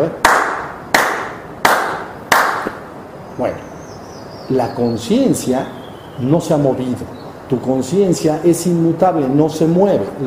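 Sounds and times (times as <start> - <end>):
speech: 0.0 - 0.3, 3.4 - 3.7, 4.5 - 10.2
single hand clap: 0.2 - 2.8.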